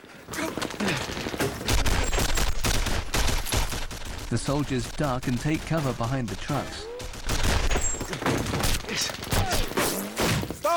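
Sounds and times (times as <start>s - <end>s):
gunfire through a window: 0.9s - 10.5s
speech: 4.3s - 6.9s, 9.0s - 9.2s.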